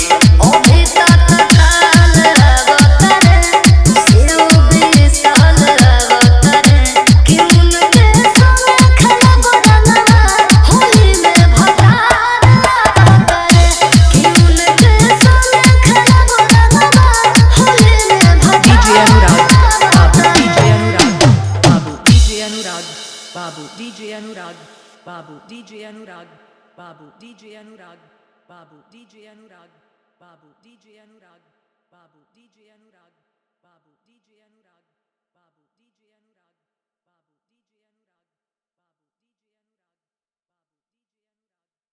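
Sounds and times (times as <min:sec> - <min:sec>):
Holi dholak drum bass mix: 0:00.0 - 0:24.8.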